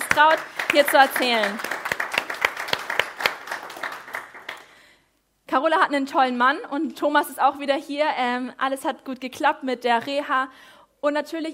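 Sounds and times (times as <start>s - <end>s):
audience applause: 0.0s - 4.7s
speech: 0.2s - 1.7s, 5.5s - 11.5s.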